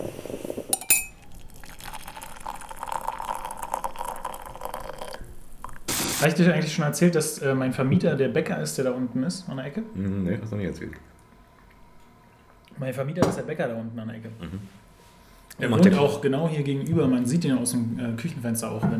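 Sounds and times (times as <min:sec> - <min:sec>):
cups and dishes clinking while making coffee: 0:00.7 - 0:05.2
speech: 0:06.2 - 0:11.1, 0:12.8 - 0:14.8, 0:15.6 - 0:18.9.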